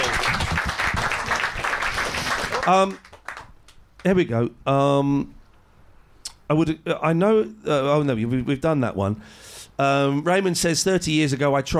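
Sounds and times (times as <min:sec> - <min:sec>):
round of applause: 0:00.0 - 0:04.1
speech: 0:02.6 - 0:03.0, 0:04.0 - 0:05.4, 0:06.5 - 0:11.7.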